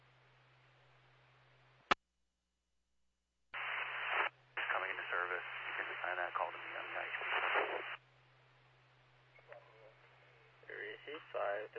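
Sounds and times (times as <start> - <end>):
radio static: 3.6 - 8.0, 10.7 - 11.7.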